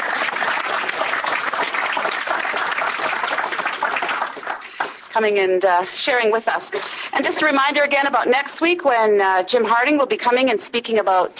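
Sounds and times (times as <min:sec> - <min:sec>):
audience applause: 0:00.0 - 0:05.1
speech: 0:05.2 - 0:11.3.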